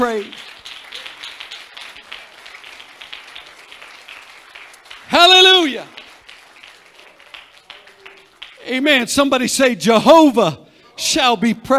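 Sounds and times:
speech: 0.0s - 0.4s, 8.7s - 11.7s
audience clapping hands: 0.0s - 9.3s.

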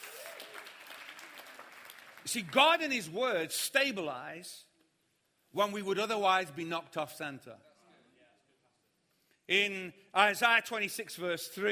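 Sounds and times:
audience round of applause: 0.0s - 2.5s
speech: 2.3s - 4.7s, 5.5s - 7.7s, 9.5s - 11.7s.

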